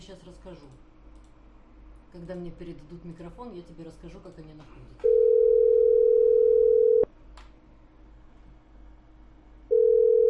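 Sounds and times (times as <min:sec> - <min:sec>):
speech: 0:00.1 - 0:00.9, 0:02.1 - 0:05.2
telephone dial tone: 0:05.1 - 0:07.0, 0:09.7 - 0:10.2.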